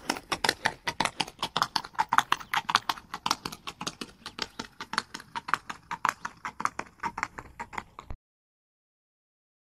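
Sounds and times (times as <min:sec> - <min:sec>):
horse running hoofbeats: 0:00.0 - 0:08.2.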